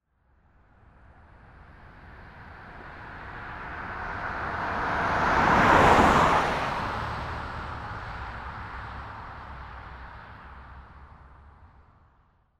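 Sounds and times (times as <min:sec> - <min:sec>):
car driving by: 0:02.3 - 0:10.8.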